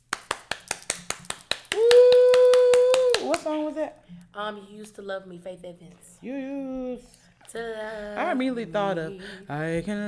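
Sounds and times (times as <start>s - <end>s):
clapping: 0.0s - 3.9s
speech: 3.8s - 10.0s.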